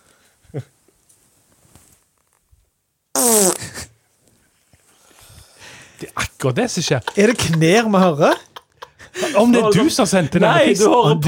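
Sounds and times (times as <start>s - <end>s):
speech: 0.5s - 0.8s, 6.4s - 8.5s, 9.4s - 11.2s
recorded fart played back on a phone: 3.1s - 4.0s
laughter: 6.0s - 11.2s.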